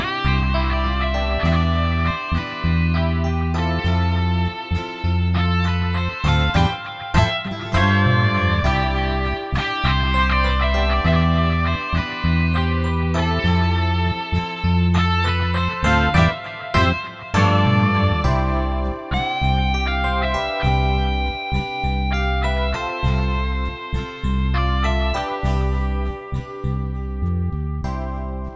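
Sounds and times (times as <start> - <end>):
soft rock backing track: 0.0 - 28.5.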